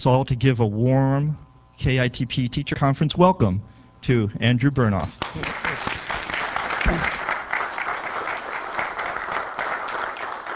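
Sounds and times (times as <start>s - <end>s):
speech: 0.0s - 5.6s
audience applause: 5.2s - 10.5s.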